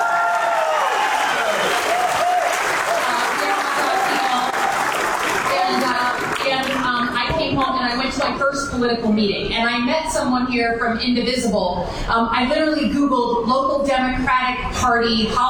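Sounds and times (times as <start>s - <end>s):
cheers and voices: 0.0s - 6.8s
audience applause: 0.0s - 7.2s
speech: 8.3s - 15.4s.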